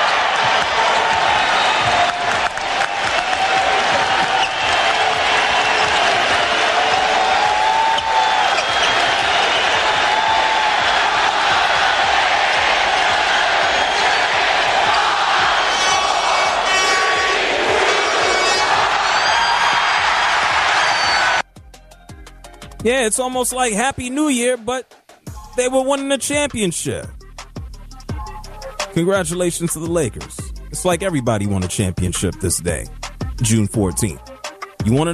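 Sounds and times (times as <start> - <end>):
huge arena crowd cheering championship win: 0.0 - 21.4
claps: 0.4 - 9.9
speech: 23.1 - 25.0, 25.6 - 27.2, 29.0 - 35.1.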